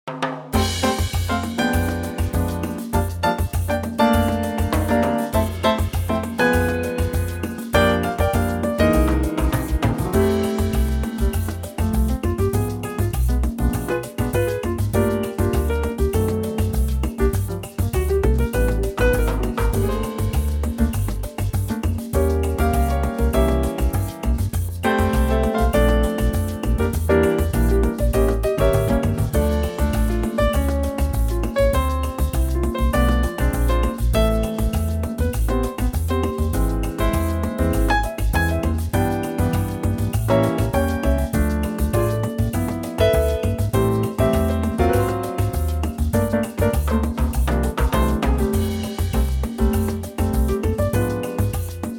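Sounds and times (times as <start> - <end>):
latin music in F: 0.0 - 51.9.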